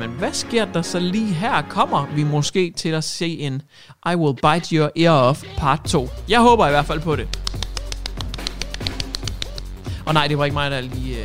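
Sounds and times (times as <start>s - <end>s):
speech: 0.0s - 7.5s, 10.1s - 11.2s
small hands clapping: 7.1s - 9.8s.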